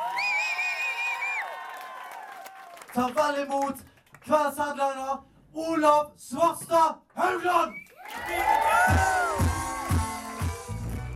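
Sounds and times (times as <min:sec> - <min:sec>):
audience cheering: 0:00.0 - 0:03.2, 0:07.9 - 0:11.1
audience applause: 0:00.0 - 0:04.2, 0:08.0 - 0:10.9
speech: 0:02.9 - 0:09.1.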